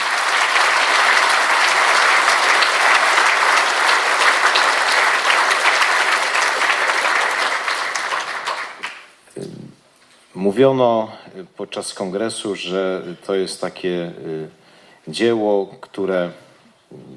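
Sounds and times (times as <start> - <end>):
audience applause at a congress gathering: 0.0 - 9.2
speech: 10.4 - 17.1.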